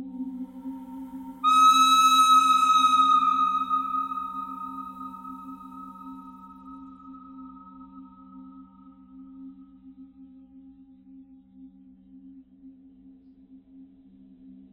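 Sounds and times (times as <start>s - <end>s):
pentatonic bird cries: 1.5s - 7.8s.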